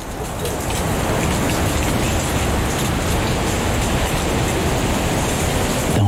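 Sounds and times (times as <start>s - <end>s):
wind rustling falling leaves: 0.0s - 6.0s.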